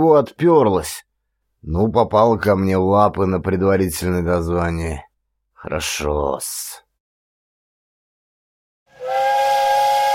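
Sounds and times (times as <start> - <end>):
speech: 0.0 - 6.8
steam whistle of an approaching train: 8.9 - 10.1.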